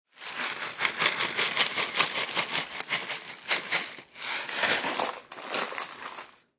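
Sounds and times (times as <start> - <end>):
cereal shaken into bowl: 0.1 - 6.4.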